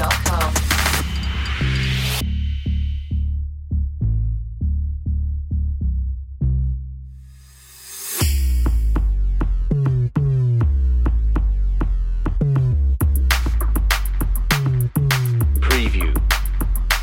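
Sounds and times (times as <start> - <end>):
drums: 0.0 - 3.2, 7.7 - 17.0
bass: 0.0 - 17.0.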